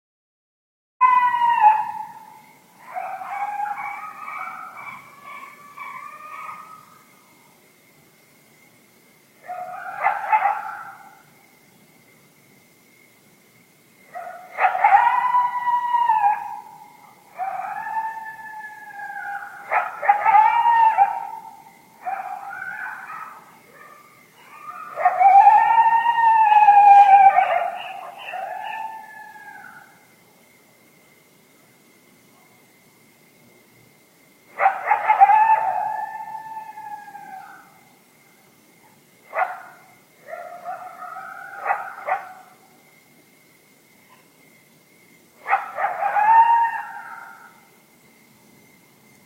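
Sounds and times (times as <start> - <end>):
howling: 1.0 - 7.1, 9.4 - 11.2, 14.1 - 30.0, 34.5 - 38.0, 39.3 - 42.7, 45.4 - 47.7.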